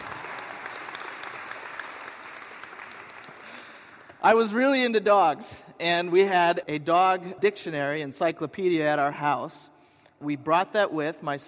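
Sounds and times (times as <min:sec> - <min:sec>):
audience applause: 0:00.0 - 0:04.2
speech: 0:04.2 - 0:11.4.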